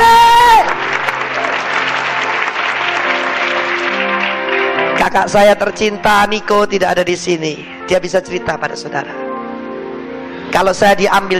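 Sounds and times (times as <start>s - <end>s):
audience applause: 0.0s - 5.4s
speech: 5.1s - 9.2s, 10.5s - 11.3s.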